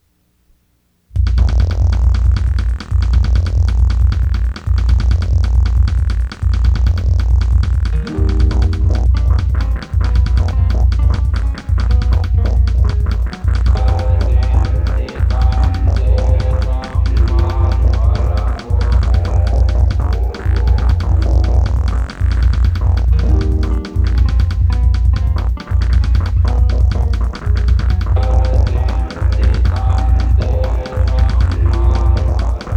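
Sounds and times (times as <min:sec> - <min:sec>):
instrumental music: 0:01.2 - 0:32.7.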